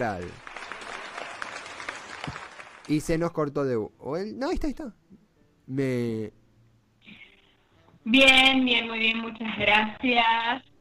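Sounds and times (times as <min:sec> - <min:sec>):
speech: 0:00.0 - 0:00.4, 0:02.3 - 0:06.4, 0:08.0 - 0:10.7
applause: 0:00.0 - 0:03.2.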